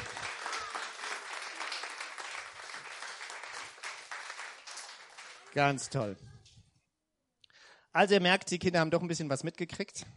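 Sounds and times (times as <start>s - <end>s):
applause: 0.0s - 6.1s
speech: 5.5s - 6.3s, 8.0s - 10.1s.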